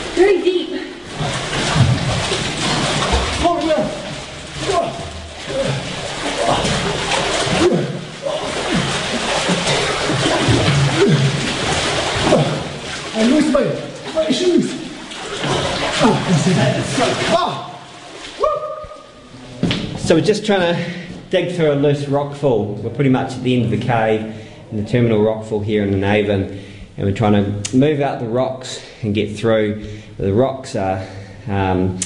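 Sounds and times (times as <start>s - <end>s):
speech: 0.2s - 1.6s, 2.2s - 4.0s, 13.2s - 14.8s, 16.0s - 17.5s, 20.1s - 32.0s
person swimming through cold cave water with splashing strokes: 0.9s - 19.3s.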